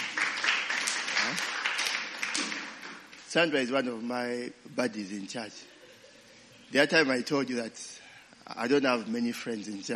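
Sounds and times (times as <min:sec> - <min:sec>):
audience clapping: 0:00.0 - 0:03.3
speech: 0:03.3 - 0:05.7, 0:06.7 - 0:09.9.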